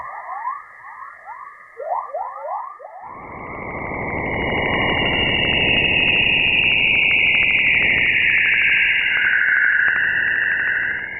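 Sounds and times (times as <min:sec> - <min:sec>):
chorus plasma waves recorded in space: 0:03.0 - 0:11.1.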